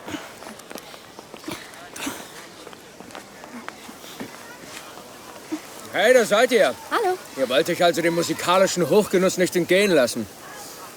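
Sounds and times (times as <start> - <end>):
footsteps of several people walking toward a bratwurst stand: 0.0 - 8.5
murmuring voices: 0.0 - 10.9
speech: 6.0 - 10.4.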